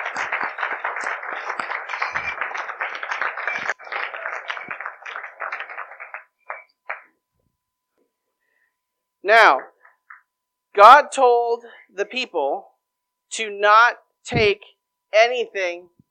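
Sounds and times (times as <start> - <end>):
audience applause: 0.0 - 7.1
speech: 9.3 - 9.7, 10.8 - 12.7, 13.3 - 16.0.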